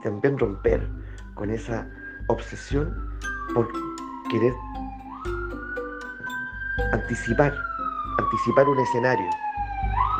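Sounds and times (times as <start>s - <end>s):
speech: 0.0s - 5.4s, 6.8s - 10.0s
alarm siren wailing: 0.0s - 10.1s.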